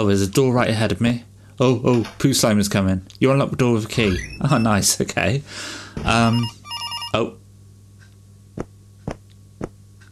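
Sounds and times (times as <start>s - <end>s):
speech: 0.0s - 7.4s
telephone ringing in a video game: 4.0s - 5.0s, 6.1s - 7.3s.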